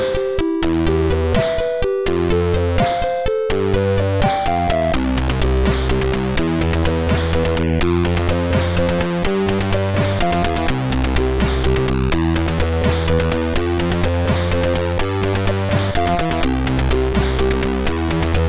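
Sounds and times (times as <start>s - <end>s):
chiptune music on MOS6581R3 sound chip: 0.0s - 18.4s.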